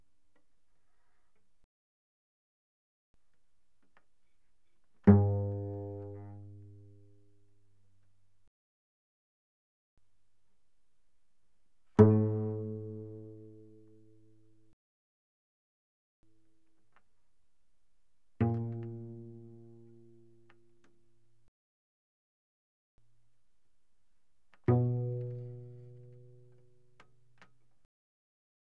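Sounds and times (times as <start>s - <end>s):
cello pizzicato mezzo-forte on the C string: 5.0s - 7.5s, 11.9s - 13.9s, 18.4s - 20.9s, 24.7s - 27.1s.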